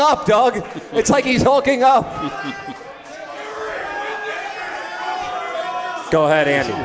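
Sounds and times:
speech: 0:00.1 - 0:02.8, 0:06.1 - 0:06.8
laughter: 0:00.5 - 0:03.9
crowd cheering wildly: 0:02.0 - 0:06.8.

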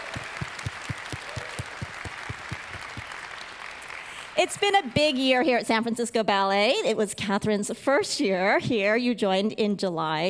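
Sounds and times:
audience applause: 0:00.0 - 0:05.2
speech: 0:04.4 - 0:10.2.

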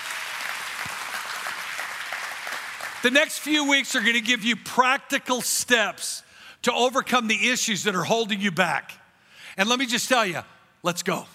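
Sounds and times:
faint church congregation applause during a sermon: 0:00.0 - 0:04.1
speech: 0:03.0 - 0:09.0, 0:09.6 - 0:11.3.

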